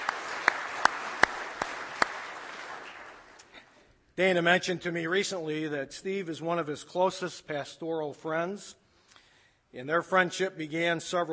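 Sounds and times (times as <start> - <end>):
round of applause: 0.0 - 3.7
speech: 4.2 - 8.8, 9.7 - 11.3.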